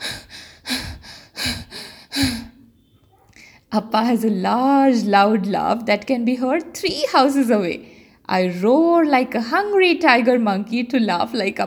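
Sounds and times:
panting through the mouth with blocked nose: 0:00.0 - 0:02.5
speech: 0:03.7 - 0:11.6.

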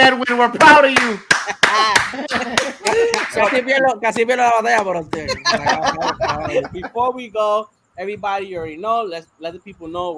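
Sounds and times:
speech: 0:00.1 - 0:10.1
applause: 0:00.9 - 0:03.6
laughter: 0:01.3 - 0:03.6, 0:05.1 - 0:07.1.

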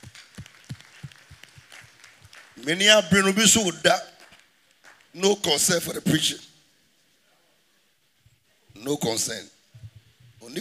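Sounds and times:
audience clapping: 0:00.0 - 0:05.2
speech: 0:02.6 - 0:04.1, 0:05.2 - 0:06.5, 0:08.9 - 0:09.6.

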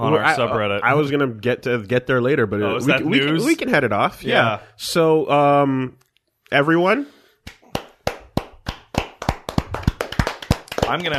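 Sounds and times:
speech: 0:00.0 - 0:07.2, 0:10.9 - 0:11.1
hosts clapping: 0:07.4 - 0:11.1.

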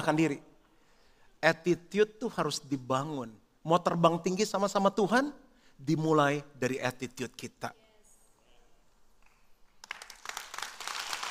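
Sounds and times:
speech: 0:00.0 - 0:00.5, 0:01.4 - 0:07.8
congregation clapping: 0:09.2 - 0:11.2.

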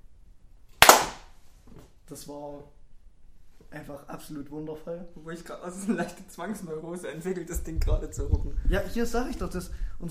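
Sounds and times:
hand clap: 0:00.8 - 0:01.3
speech: 0:02.1 - 0:02.8, 0:03.7 - 0:10.0.

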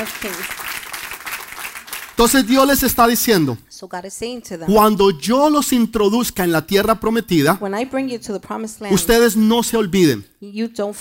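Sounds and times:
speech: 0:00.0 - 0:00.7, 0:02.2 - 0:10.9
crowd applause: 0:00.0 - 0:02.8.

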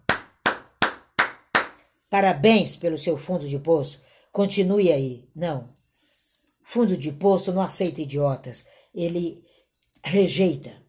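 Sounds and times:
applause clapping: 0:00.0 - 0:01.8
speech: 0:02.1 - 0:05.8, 0:06.7 - 0:10.8.

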